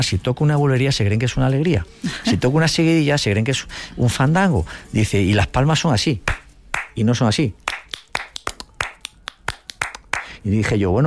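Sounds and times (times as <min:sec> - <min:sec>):
speech: 0:00.0 - 0:06.4, 0:07.0 - 0:07.6, 0:10.4 - 0:11.0
flamenco guitarist finger snapping to calm nerves: 0:07.7 - 0:10.3.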